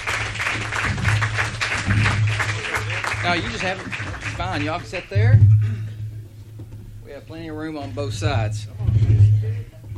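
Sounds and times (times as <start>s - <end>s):
round of applause: 0.0s - 5.2s
speech: 3.2s - 5.6s, 7.2s - 9.6s.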